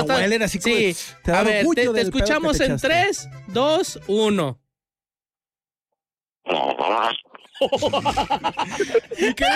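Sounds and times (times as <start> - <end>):
speech: 0.0 - 4.6, 6.5 - 9.5
person imitating a fart with their mouth: 6.4 - 7.6
laughter: 7.6 - 9.5.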